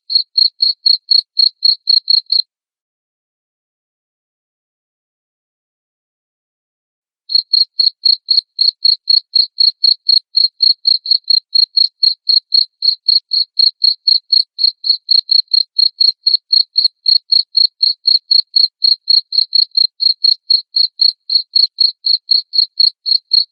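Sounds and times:
cricket chirping: 0.1s - 2.4s, 7.3s - 23.5s.

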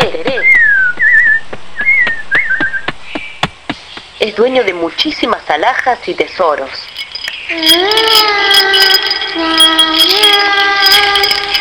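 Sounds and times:
speech: 0.0s - 0.5s, 4.4s - 11.3s
person whistling like a small bird: 0.4s - 3.0s.

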